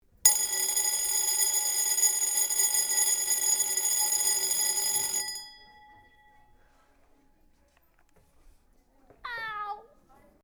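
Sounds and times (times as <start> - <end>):
bell: 0.3 - 7.2.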